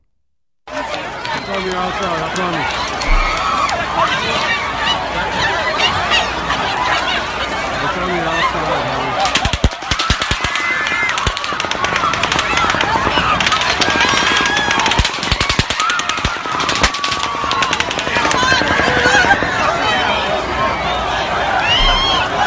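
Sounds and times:
crowd voices and shouting: 0.7s - 22.4s
rapid automatic gunfire during the Las Vegas mass shooting: 9.2s - 20.2s.

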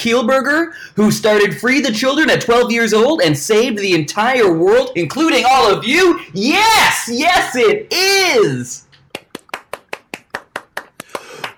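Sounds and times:
speech: 0.0s - 8.8s
subdued applause: 9.1s - 11.5s.

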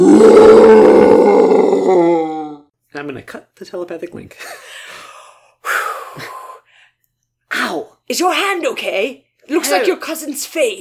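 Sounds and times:
voice imitating a stomping monster's roar: 0.0s - 2.7s
speech: 3.0s - 4.8s, 6.2s - 6.4s, 7.6s - 10.7s.

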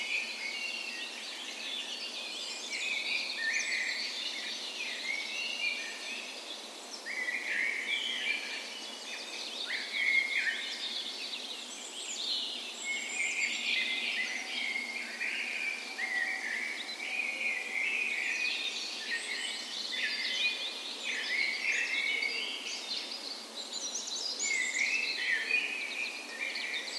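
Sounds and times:
dawn chorus of songbirds: 0.0s - 26.9s.

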